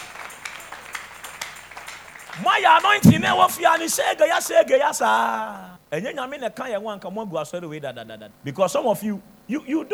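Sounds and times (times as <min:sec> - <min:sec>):
crowd clapping: 0:00.0 - 0:04.7
speech: 0:02.4 - 0:09.9.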